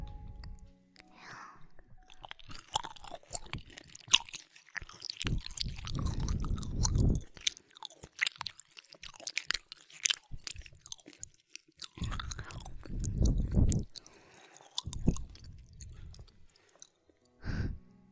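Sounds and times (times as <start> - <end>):
chewing food during a home-cooked meal: 0.0 - 17.3
faint breathing: 1.0 - 1.8, 14.0 - 14.8, 15.5 - 17.9.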